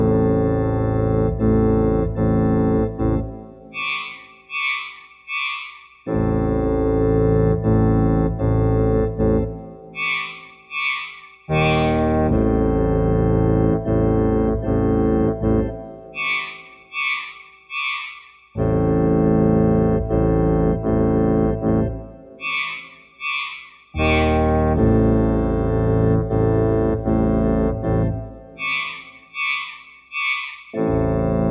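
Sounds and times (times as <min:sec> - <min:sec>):
bassoon playing scary classical music: 0:00.0 - 0:04.1, 0:06.1 - 0:10.4, 0:11.5 - 0:16.4, 0:18.6 - 0:22.6, 0:24.0 - 0:29.1, 0:30.8 - 0:31.4
pipe organ playing scary classical music: 0:00.0 - 0:04.8, 0:06.0 - 0:17.2, 0:18.6 - 0:22.9, 0:24.0 - 0:29.6, 0:30.2 - 0:31.4.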